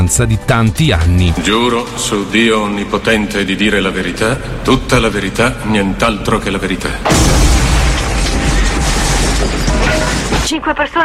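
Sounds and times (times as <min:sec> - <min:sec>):
speech: 0:00.0 - 0:07.4, 0:10.5 - 0:11.0
bomb explosion in a pub in Guildford: 0:06.9 - 0:10.5.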